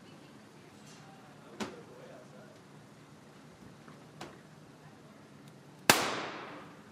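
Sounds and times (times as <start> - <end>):
double-action pistol shot: 5.9 - 6.7.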